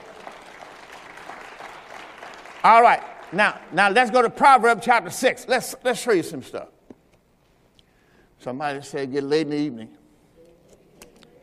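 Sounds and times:
audience clapping: 0:00.0 - 0:04.3
speech: 0:02.6 - 0:06.7, 0:08.4 - 0:10.0.

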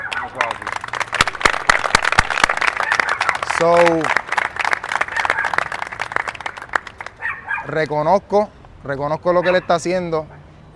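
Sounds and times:
audience applause: 0:00.2 - 0:07.2
speech: 0:00.3 - 0:00.6, 0:03.6 - 0:04.2, 0:07.7 - 0:10.7.

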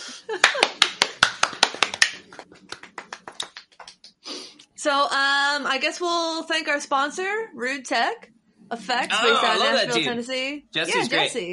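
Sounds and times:
audience clapping: 0:00.4 - 0:04.2
speech: 0:04.8 - 0:11.5.

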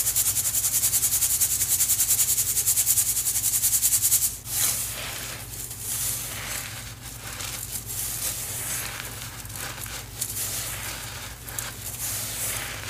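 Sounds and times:
cornstarch crunchies ticking hiss: 0:00.0 - 0:12.8
cornstarch crunchies crunching: 0:04.4 - 0:12.8.

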